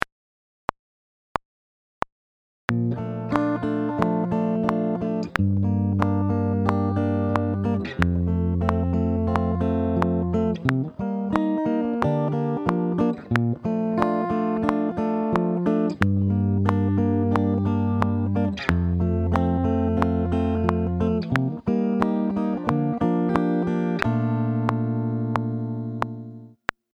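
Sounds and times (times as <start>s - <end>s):
fingerpicked strings: 2.7s - 26.6s.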